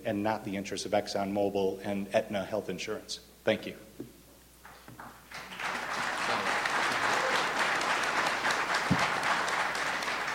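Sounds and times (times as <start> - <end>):
speech: 0.0 - 4.2
audience applause: 5.3 - 10.3.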